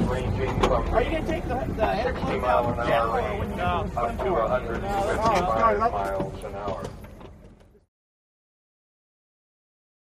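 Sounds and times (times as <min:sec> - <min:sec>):
motorboats at a boat race pit: 0:00.0 - 0:07.8.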